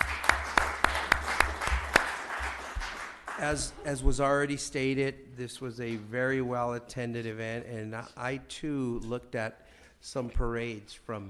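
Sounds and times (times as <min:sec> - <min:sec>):
sparse applause at a city council meeting: 0:00.0 - 0:04.0
speech: 0:03.4 - 0:11.2.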